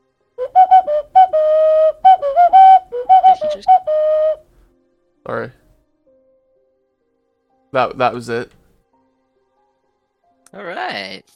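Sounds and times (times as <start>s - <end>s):
Colombian ocarina playing a video game theme melody: 0.4s - 4.4s
speech: 7.7s - 8.6s, 10.5s - 11.3s.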